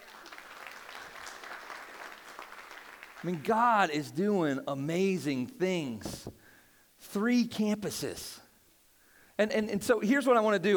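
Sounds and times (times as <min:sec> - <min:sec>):
audience applause: 0:00.0 - 0:03.4
speech: 0:03.2 - 0:06.4, 0:07.1 - 0:08.4, 0:09.4 - 0:10.7.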